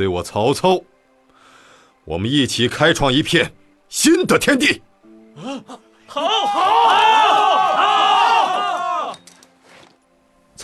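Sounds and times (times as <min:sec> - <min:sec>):
speech: 0:00.0 - 0:00.9, 0:02.1 - 0:07.6
troops cheering in a Chinese historical audio drama: 0:05.4 - 0:09.3.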